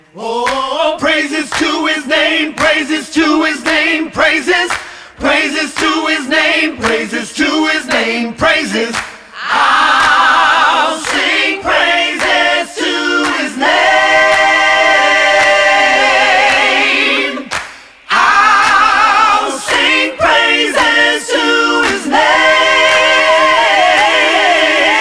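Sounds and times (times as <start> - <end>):
a cappella singing: 0.0 - 25.0.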